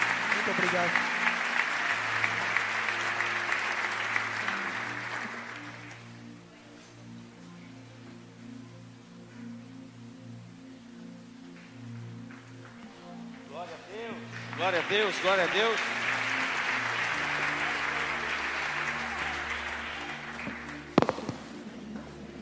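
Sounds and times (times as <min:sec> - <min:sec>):
audience clapping: 0:00.0 - 0:06.2, 0:11.6 - 0:22.1
sustained keyboard chords: 0:00.0 - 0:22.4
speech: 0:00.5 - 0:01.2, 0:14.9 - 0:16.0.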